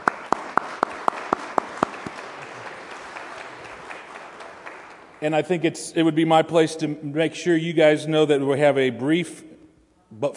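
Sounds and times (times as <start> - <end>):
brief round of applause: 0.0 - 5.2
speech: 5.2 - 9.5, 10.1 - 10.3.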